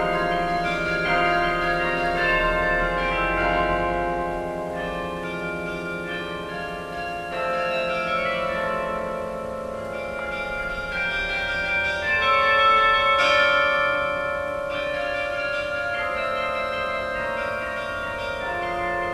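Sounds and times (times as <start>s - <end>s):
carillon concert: 0.0s - 19.1s.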